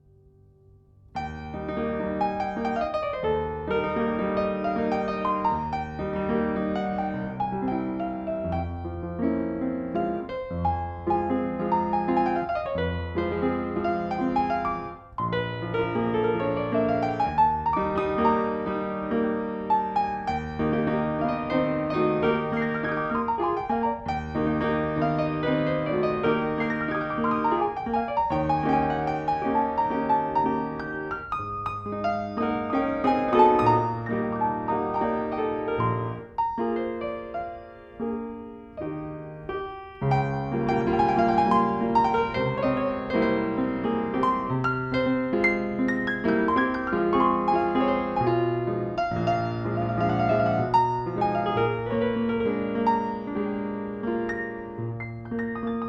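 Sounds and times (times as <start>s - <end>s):
Welte-Mignon player piano playing a slow piece: 0.0s - 55.8s.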